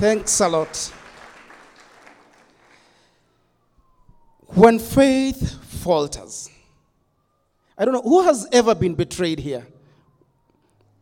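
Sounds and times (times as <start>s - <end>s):
speech: 0.0s - 1.0s, 4.5s - 6.6s, 7.8s - 9.7s
audience clapping: 0.0s - 3.1s.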